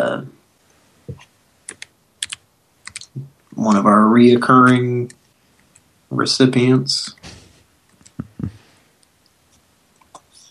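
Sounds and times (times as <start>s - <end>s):
typing on a computer keyboard: 1.7s - 3.9s
speech: 3.6s - 5.2s, 6.1s - 7.4s.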